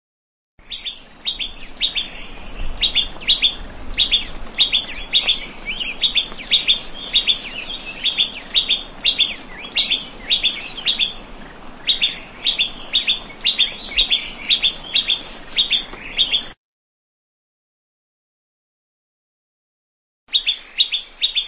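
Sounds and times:
plain prinia chirping in a rice field: 0.6s - 16.6s, 20.3s - 21.4s.

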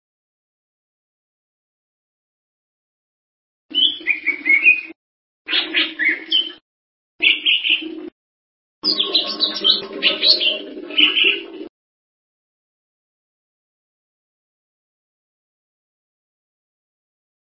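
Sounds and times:
bird song twittering: 3.7s - 6.6s, 7.2s - 8.0s, 8.8s - 11.5s.

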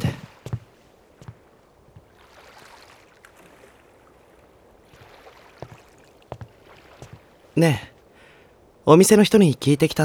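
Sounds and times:
wooden oars knocking and splashing: 0.0s - 8.8s
water sloshing around rowboats: 0.0s - 10.0s
speech: 7.6s - 7.9s, 8.9s - 10.0s.

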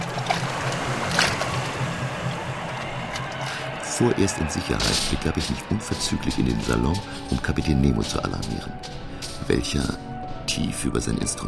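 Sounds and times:
oars rowing a boat through water: 0.0s - 3.6s
speech: 4.0s - 11.4s.

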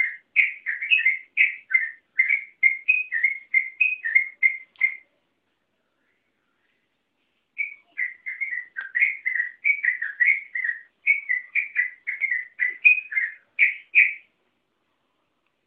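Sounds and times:
Oriental magpie-robin singing whistled notes: 0.0s - 5.1s, 7.6s - 14.3s.

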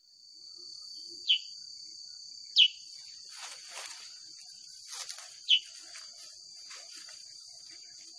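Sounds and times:
sooty-headed bulbul song of sharp downslurred chirps: 0.8s - 1.7s, 2.4s - 2.9s, 5.4s - 5.8s, 7.5s - 8.1s.

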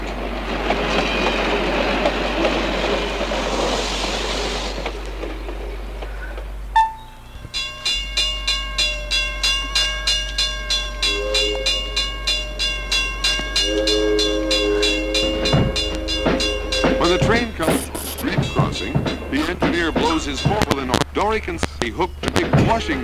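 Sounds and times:
freight train wheels clacking on rails: 0.0s - 23.0s
high whine: 6.7s - 23.0s.

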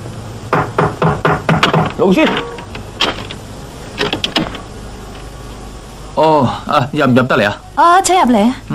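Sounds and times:
knocking on a door: 0.5s - 3.2s
speech: 2.0s - 2.5s, 6.2s - 8.7s.

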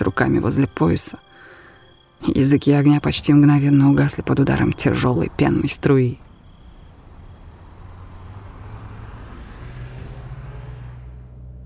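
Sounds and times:
speech: 0.2s - 1.5s, 2.2s - 6.3s
car driving on a dirt road: 3.7s - 11.6s.

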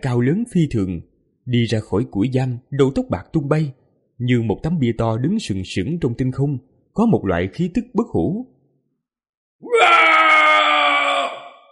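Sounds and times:
speech: 0.0s - 8.5s
long scream toward the sky: 9.6s - 11.7s.

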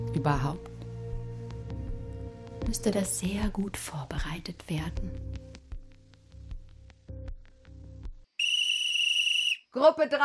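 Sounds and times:
speech: 0.1s - 0.7s, 2.6s - 5.3s, 9.8s - 10.2s
long piercing electronic whistle from a telescreen: 8.4s - 9.7s.

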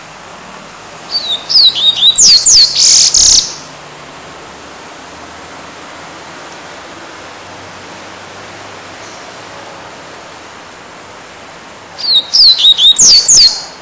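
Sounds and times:
double-collared seedeater whistled song: 1.1s - 3.7s, 12.0s - 13.8s.

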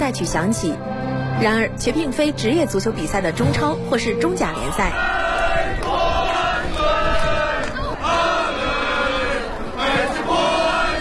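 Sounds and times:
speech: 0.1s - 5.2s
football fans chanting a rhythmic cheer: 4.5s - 11.0s.

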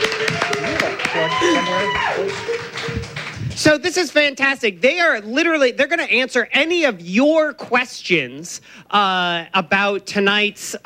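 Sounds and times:
cheers and voices: 0.0s - 3.1s
audience applause at an election-night forum: 0.0s - 3.8s
speech: 3.6s - 10.8s.

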